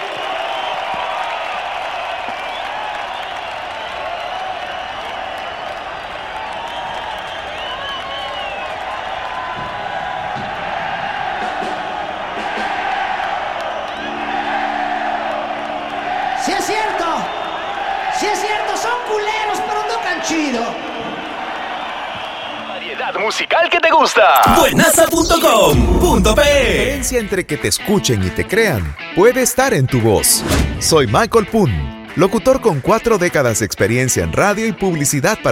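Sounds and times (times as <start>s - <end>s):
audience applause and cheering: 0.0s - 27.6s
speech: 24.0s - 35.4s.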